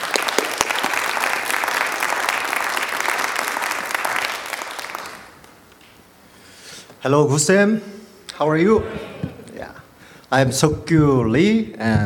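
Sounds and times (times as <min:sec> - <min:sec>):
audience applause: 0:00.0 - 0:05.6
speech: 0:07.0 - 0:09.2, 0:10.3 - 0:12.0.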